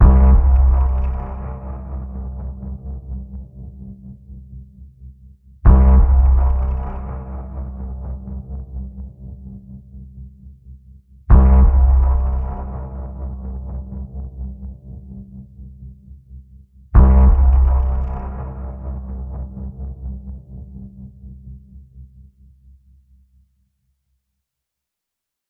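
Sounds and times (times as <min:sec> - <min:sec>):
danger pulse in the key of C: 0:00.0 - 0:04.8, 0:05.7 - 0:10.4, 0:11.3 - 0:16.0, 0:17.0 - 0:22.1.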